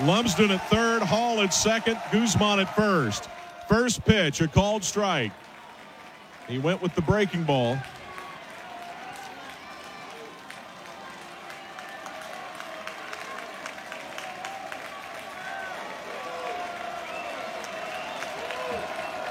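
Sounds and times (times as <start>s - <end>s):
speech: 0.0s - 5.5s, 6.5s - 8.0s
baseball crowd cheering: 0.0s - 19.2s
scattered clapping: 0.0s - 19.2s
shrill whistles: 16.9s - 19.2s.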